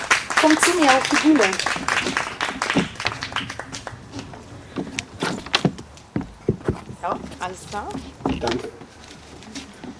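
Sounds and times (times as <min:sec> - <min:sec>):
audience applause: 0:00.0 - 0:04.2
speech: 0:00.4 - 0:02.3, 0:07.1 - 0:08.8.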